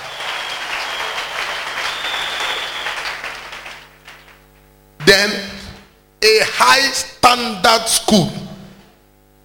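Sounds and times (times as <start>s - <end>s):
crowd applause: 0.0s - 4.5s
speech: 5.1s - 5.5s, 6.6s - 8.4s.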